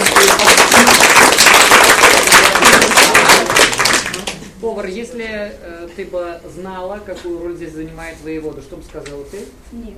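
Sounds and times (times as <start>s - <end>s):
applause: 0.0s - 4.5s
speech: 4.8s - 9.9s.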